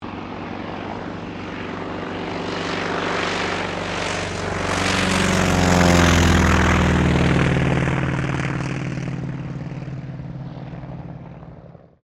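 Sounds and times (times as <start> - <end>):
T-28D Trojan aircraft takeoff: 0.0 - 12.0.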